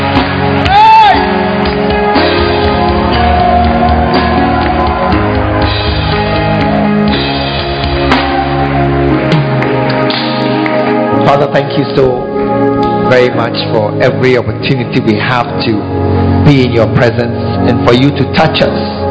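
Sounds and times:
audience clapping and cheering: 0.0s - 11.2s
people shouting: 0.6s - 1.4s, 2.8s - 5.1s
speech: 11.8s - 12.3s, 13.1s - 19.0s.

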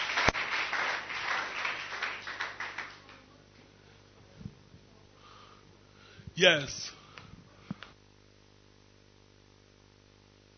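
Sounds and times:
audience clapping: 0.0s - 3.3s
speech: 6.4s - 7.0s.

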